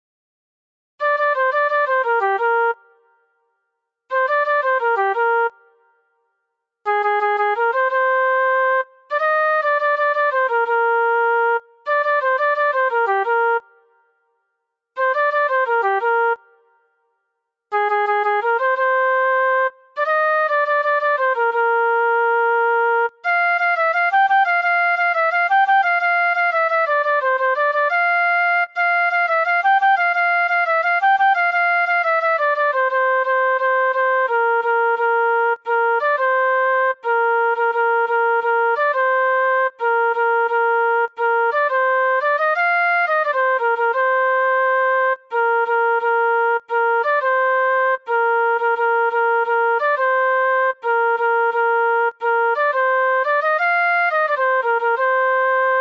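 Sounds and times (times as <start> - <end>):
flute: 1.0 - 6.3, 6.9 - 14.3, 15.0 - 55.8.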